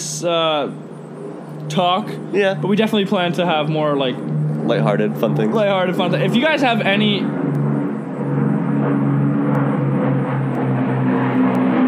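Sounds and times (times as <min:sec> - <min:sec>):
World War II Lancaster bomber flying overhead: 0:00.0 - 0:11.8
speech: 0:00.2 - 0:00.9, 0:01.6 - 0:07.6.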